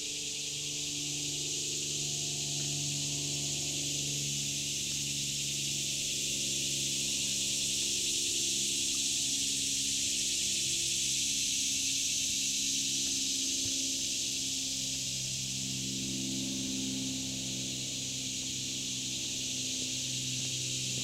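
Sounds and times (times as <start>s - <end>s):
summer insects buzzing chorus in a national forest: 0.0s - 21.0s.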